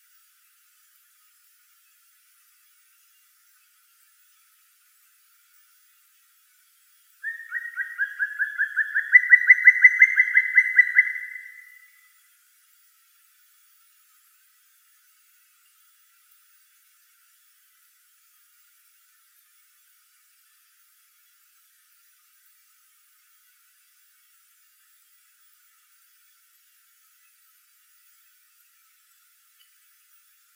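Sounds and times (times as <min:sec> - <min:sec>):
black woodpecker Dryocopus martius: 0:07.2 - 0:11.9.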